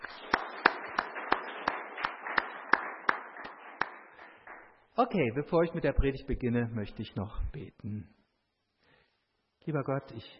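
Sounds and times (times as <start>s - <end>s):
audience applause: 0.0s - 4.8s
speech: 5.0s - 8.2s, 9.6s - 10.3s.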